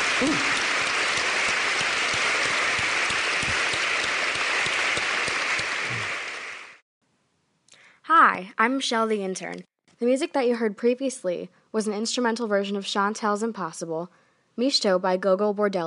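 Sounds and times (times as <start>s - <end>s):
crowd applause: 0.0s - 6.8s
speech: 0.2s - 0.6s, 8.4s - 15.8s.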